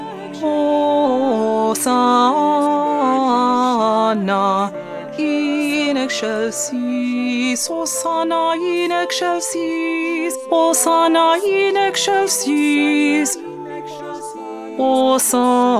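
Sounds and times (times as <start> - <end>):
second alto voice singing: 0.0 - 15.7.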